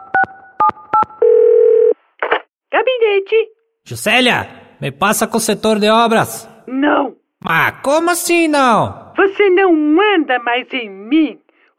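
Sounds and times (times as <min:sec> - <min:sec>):
telephone keypad dialing beeps: 0:00.0 - 0:01.2
longer steady telephone tone: 0:00.0 - 0:02.0
speech: 0:02.8 - 0:11.4.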